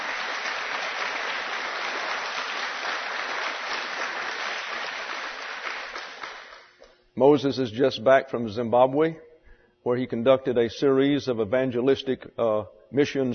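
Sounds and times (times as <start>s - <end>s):
audience applause: 0.0s - 6.8s
speech: 7.2s - 13.3s.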